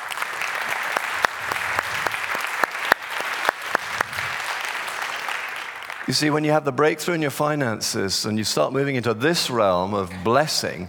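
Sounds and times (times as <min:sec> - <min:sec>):
audience clapping: 0:00.0 - 0:06.6
speech: 0:06.1 - 0:10.8.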